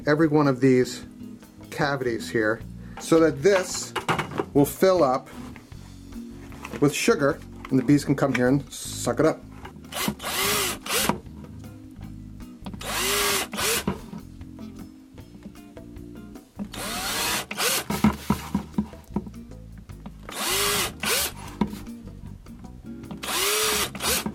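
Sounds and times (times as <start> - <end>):
speech: 0.0 - 1.2, 1.8 - 5.4, 6.8 - 10.2
power drill drilling holes in plastic tray: 9.9 - 11.2, 12.8 - 14.0, 16.7 - 18.2, 20.3 - 21.5, 23.2 - 24.3.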